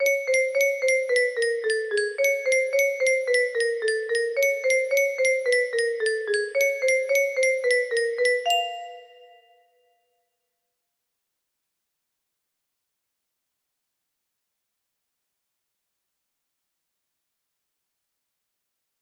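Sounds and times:
melody: 0.0s - 9.5s.

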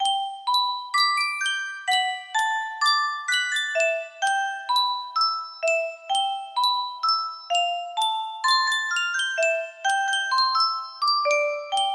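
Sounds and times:
music box melody: 0.0s - 11.9s.

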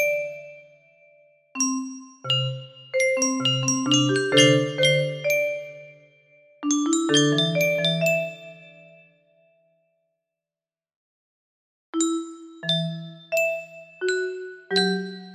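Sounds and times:
music box melody: 1.6s - 6.0s, 6.6s - 8.9s, 12.0s - 15.3s.

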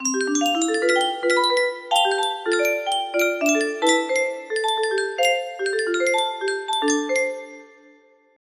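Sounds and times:
music box melody: 0.0s - 8.2s.

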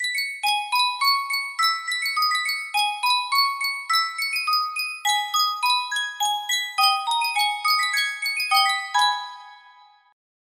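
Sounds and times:
Sankyo miniature music box: 0.0s - 10.2s.

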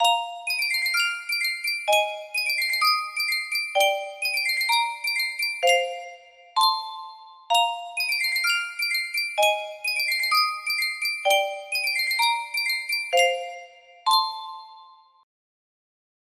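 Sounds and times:
Sankyo custom tune music box: 0.0s - 15.2s.

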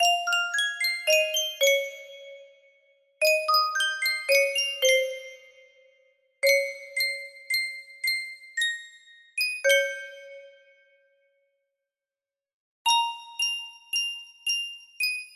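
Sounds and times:
Sankyo custom tune music box melody: 0.0s - 2.4s, 3.2s - 5.7s, 6.4s - 10.7s, 12.9s - 15.3s.

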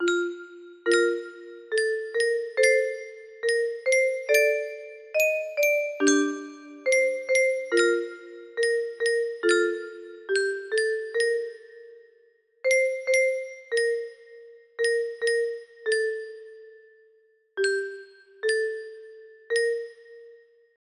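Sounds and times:
music box: 0.0s - 20.6s.

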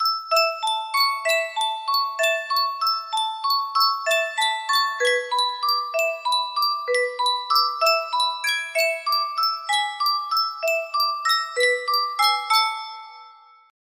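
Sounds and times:
music box melody: 0.0s - 13.7s.

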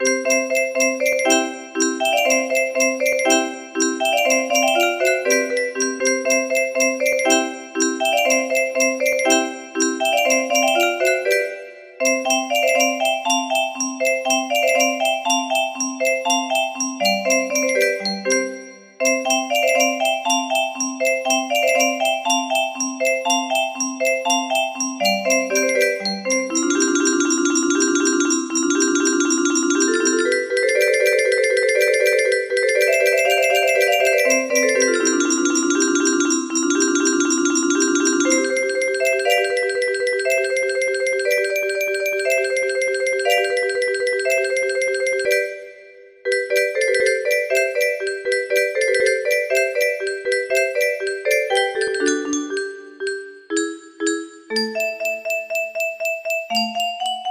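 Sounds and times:
music box melody: 0.0s - 57.2s.

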